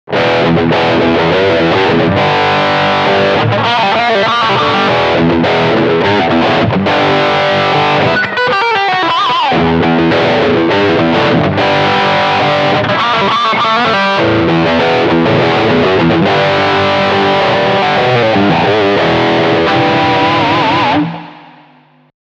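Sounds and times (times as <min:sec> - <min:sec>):
crunch guitar riff: 0:00.1 - 0:22.1.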